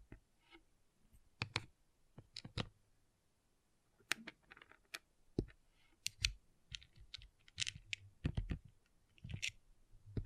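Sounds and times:
small plastic pixel art beads clicking and clattering: 4.1 - 9.6.

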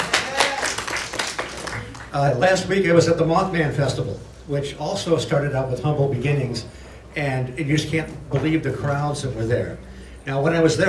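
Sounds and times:
audience applause: 0.0 - 2.4
speech: 2.1 - 10.8.

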